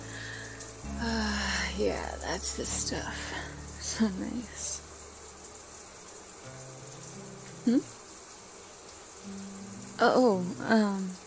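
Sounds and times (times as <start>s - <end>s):
shower water running: 0.0s - 11.2s
speech: 1.8s - 4.8s, 7.6s - 8.0s, 10.0s - 11.2s.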